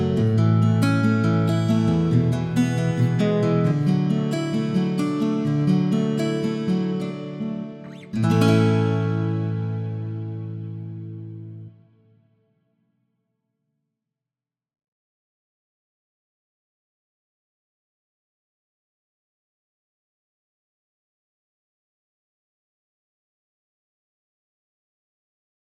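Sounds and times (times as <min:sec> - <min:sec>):
fingerpicked steel string and nylon guitars: 0:00.0 - 0:12.2.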